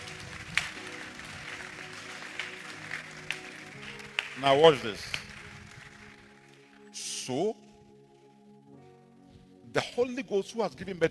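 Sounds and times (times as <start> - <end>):
audience clapping: 0.0 - 6.8
speech: 4.4 - 5.2, 7.3 - 7.6, 9.8 - 11.0.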